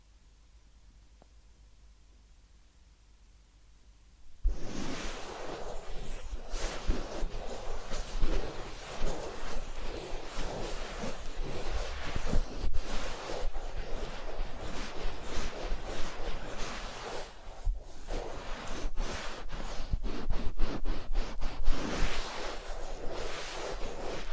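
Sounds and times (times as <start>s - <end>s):
ear cleaning and massage scratching and rustling: 4.4s - 24.3s.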